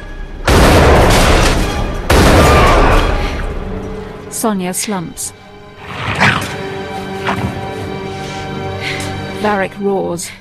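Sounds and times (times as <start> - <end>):
booming gun blasts from a picked-up gun: 0.4 - 3.6
speech: 4.4 - 5.4, 9.4 - 10.3.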